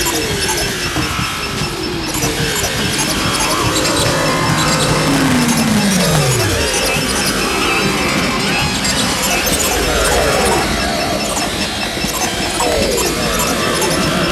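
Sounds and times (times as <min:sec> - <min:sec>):
electronica noise: 0:00.0 - 0:14.3.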